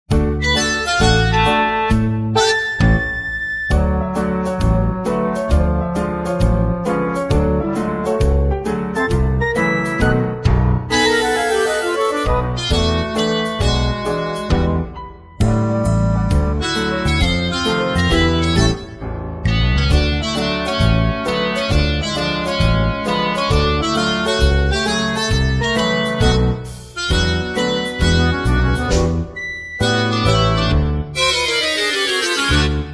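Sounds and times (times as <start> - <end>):
instrumental music: 0.1 - 32.9.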